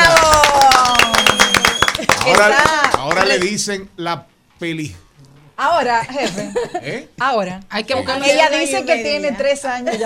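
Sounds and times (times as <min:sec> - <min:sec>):
applause: 0:00.0 - 0:03.7
speech: 0:03.3 - 0:10.0.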